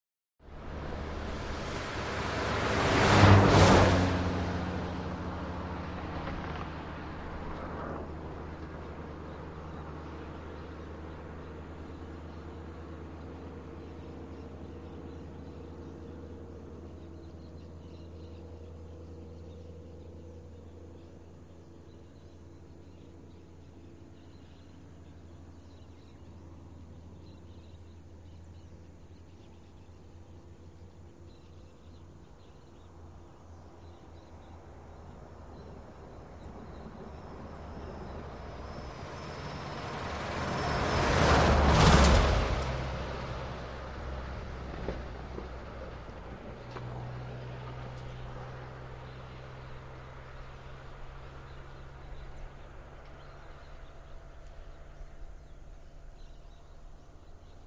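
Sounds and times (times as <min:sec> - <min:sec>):
sparse highway traffic: 0:00.4 - 0:57.6.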